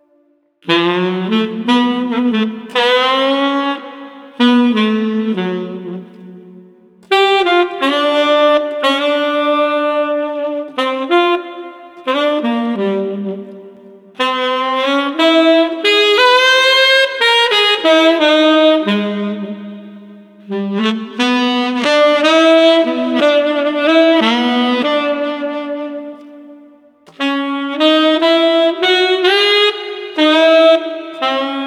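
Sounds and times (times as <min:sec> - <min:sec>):
soothing tenor saxophone: 0:00.0 - 0:31.6.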